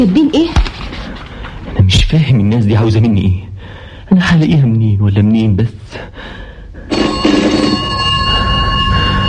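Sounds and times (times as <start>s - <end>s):
speech: 0.0s - 0.7s, 1.8s - 3.5s, 4.1s - 6.4s
telephone bell ringing: 6.9s - 9.2s.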